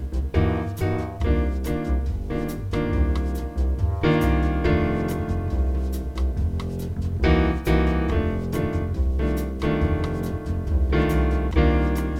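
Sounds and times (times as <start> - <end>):
II-7 V7 chord progression pattern: 0.0 - 12.1.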